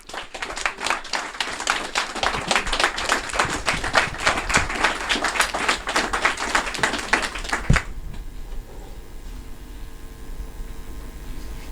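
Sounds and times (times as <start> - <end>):
audience applause: 0.0 - 8.0.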